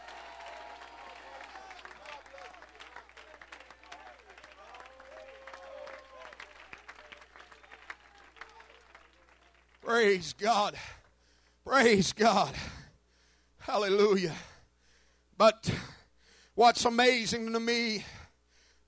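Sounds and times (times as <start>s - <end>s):
audience shouting: 0.0s - 8.8s
audience clapping: 0.0s - 10.4s
speech: 9.9s - 11.0s, 11.7s - 12.8s, 13.7s - 14.5s, 15.4s - 15.8s, 16.6s - 18.1s.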